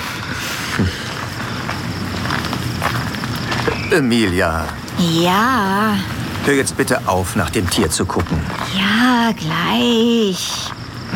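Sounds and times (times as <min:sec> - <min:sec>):
footsteps walking: 0:00.2 - 0:09.1
speech: 0:00.8 - 0:01.0, 0:03.9 - 0:10.8.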